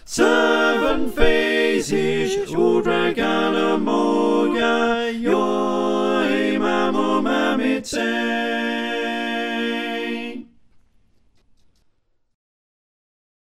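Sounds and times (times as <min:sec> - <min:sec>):
SATB four-part choir singing: 0:00.0 - 0:10.6.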